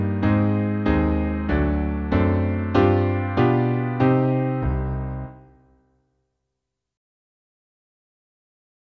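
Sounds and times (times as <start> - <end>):
backing music: 0.0 - 5.7.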